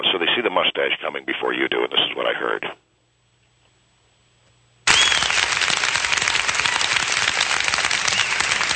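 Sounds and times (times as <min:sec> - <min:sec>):
speech: 0:00.1 - 0:02.8
crowd cheering at school board meeting: 0:04.9 - 0:08.7.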